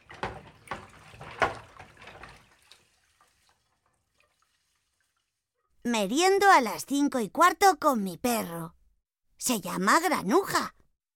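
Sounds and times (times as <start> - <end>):
tap water running while washing dishes: 0.0 - 5.7
speech: 5.8 - 8.8, 9.4 - 10.8.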